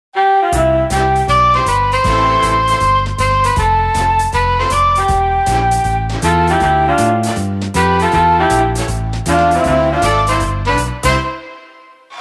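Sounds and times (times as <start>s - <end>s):
wind band game music: 0.2s - 11.8s.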